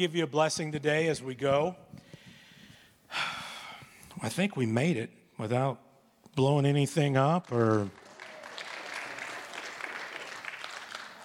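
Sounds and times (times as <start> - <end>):
speech: 0.0 - 2.0, 4.2 - 5.8, 6.4 - 8.0
church congregation clapping: 7.0 - 11.2.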